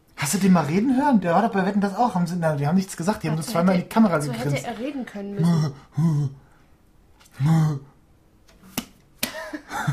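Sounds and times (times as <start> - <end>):
speech: 0.3 - 6.4, 7.4 - 7.9
hand slapping against own eye: 8.5 - 9.5.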